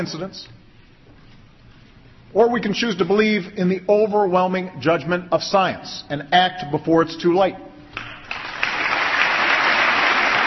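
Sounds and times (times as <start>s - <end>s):
speech: 0.0s - 0.6s, 2.3s - 7.6s
audience applause: 8.3s - 10.4s.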